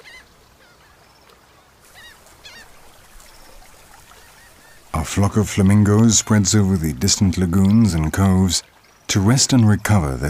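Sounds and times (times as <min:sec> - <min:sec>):
Audouin's gull colony calling: 0:01.9 - 0:03.2, 0:03.9 - 0:05.4
speech: 0:05.0 - 0:10.2.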